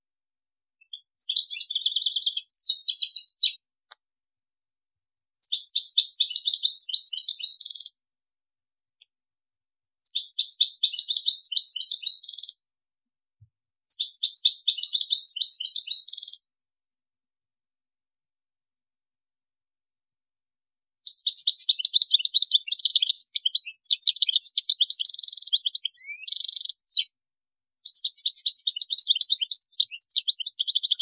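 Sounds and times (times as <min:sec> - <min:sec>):
European goldfinch song: 0:00.8 - 0:03.6, 0:05.4 - 0:08.0, 0:10.0 - 0:12.6, 0:13.9 - 0:16.5, 0:21.0 - 0:27.1, 0:27.8 - 0:30.9.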